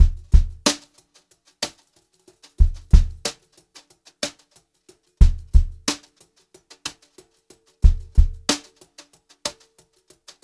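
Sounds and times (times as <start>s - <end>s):
brushed drum loops: 0.0s - 0.9s, 2.6s - 3.4s, 5.2s - 6.1s, 7.8s - 8.8s.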